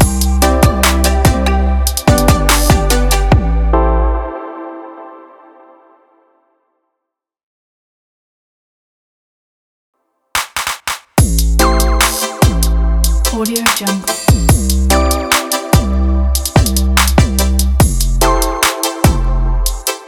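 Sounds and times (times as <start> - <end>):
podcast intro music: 0.0 - 6.3, 11.2 - 20.0.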